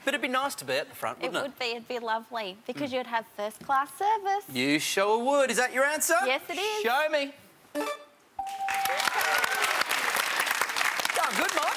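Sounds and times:
speech: 0.0 - 8.0
studio audience applause: 8.5 - 11.7.

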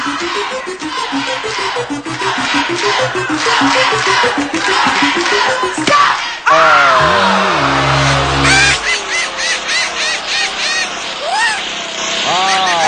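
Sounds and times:
game show whammy sound effect: 0.0 - 6.2, 6.8 - 9.0
speech: 0.2 - 1.0
laughter: 6.5 - 12.8.

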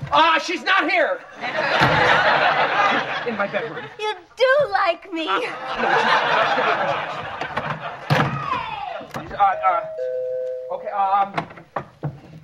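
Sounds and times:
speech: 0.1 - 7.5, 9.4 - 9.8, 10.8 - 11.5
people chatting and laughing: 1.1 - 10.2
doorbell chiming: 9.4 - 11.0.

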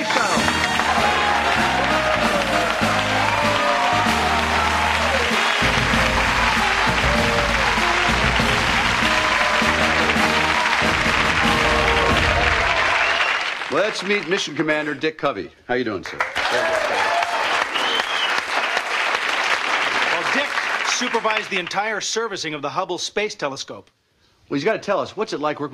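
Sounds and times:
band playing: 0.0 - 13.6
loud studio audience applause on a home-improvement TV show set: 0.0 - 15.0, 16.0 - 21.9
speech: 13.8 - 17.2, 21.0 - 25.7.

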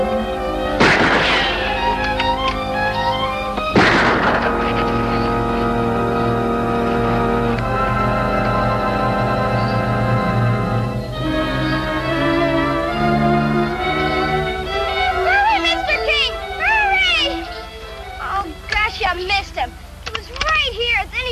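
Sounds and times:
sustained tonal music: 0.0 - 21.2
gunshots from a gun: 0.8 - 2.2, 3.7 - 5.1.

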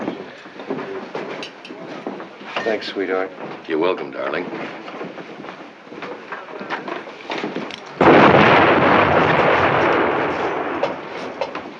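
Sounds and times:
speech: 2.6 - 5.0
artillery fire: 8.0 - 11.7.

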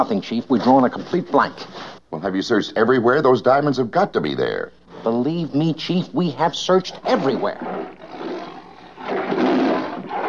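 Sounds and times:
speech: 0.0 - 8.0
lions roaring in a cage: 7.0 - 10.2.

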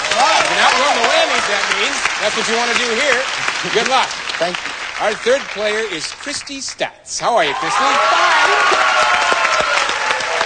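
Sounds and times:
higher cheers and shouts from a game show cheering section: 0.0 - 2.0, 7.3 - 10.4
game show contestant's cheering section clapping loudly: 0.0 - 6.8, 7.4 - 10.4
speech: 2.2 - 9.7.

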